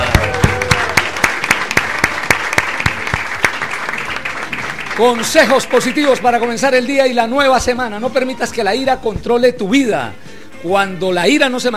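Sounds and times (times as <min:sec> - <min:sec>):
audience applause: 0:00.0 - 0:06.8
speech: 0:05.0 - 0:11.7.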